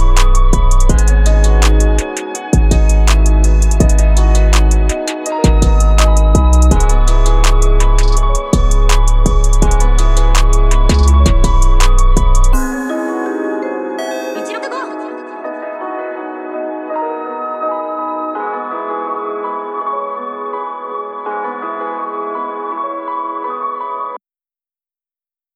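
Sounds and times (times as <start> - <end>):
music track in G minor at 165 BPM: 0.0 - 19.7.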